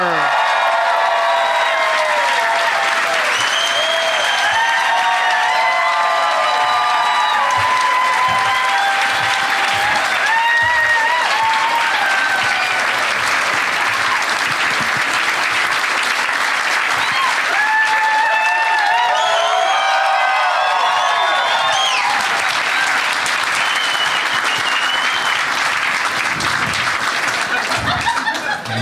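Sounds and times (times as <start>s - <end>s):
excited audience voices and whoops: 0.0s - 13.2s, 17.0s - 23.1s
audience applause greeting comedians on stage: 0.0s - 28.8s
laughter: 27.3s - 28.8s.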